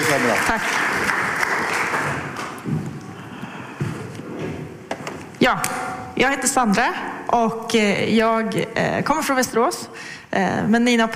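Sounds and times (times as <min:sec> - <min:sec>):
audience applause: 0:00.0 - 0:02.6
speech: 0:00.2 - 0:01.0, 0:05.4 - 0:11.1.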